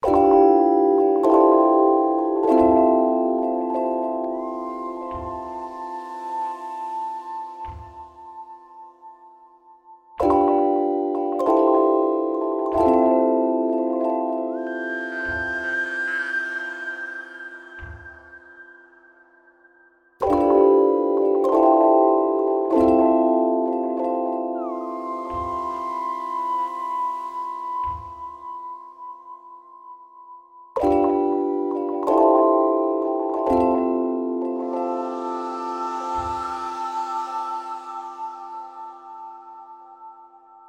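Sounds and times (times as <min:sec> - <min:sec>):
lullaby music: 0:00.0 - 0:40.6.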